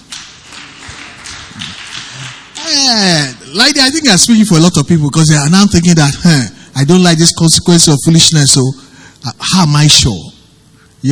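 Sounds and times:
audience clapping: 0:00.0 - 0:03.4
speech: 0:02.7 - 0:10.4, 0:11.0 - 0:11.1.

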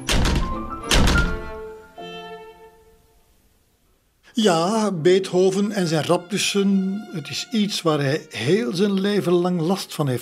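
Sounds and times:
door slammed shut loudly: 0:00.0 - 0:01.7
speech: 0:04.4 - 0:10.2.

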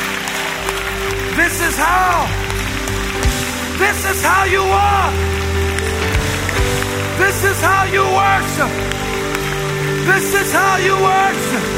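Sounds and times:
audience clapping: 0:00.0 - 0:11.7
speech: 0:01.4 - 0:02.5, 0:03.2 - 0:05.6, 0:07.2 - 0:09.0, 0:10.0 - 0:11.7
person singing: 0:03.7 - 0:11.7.

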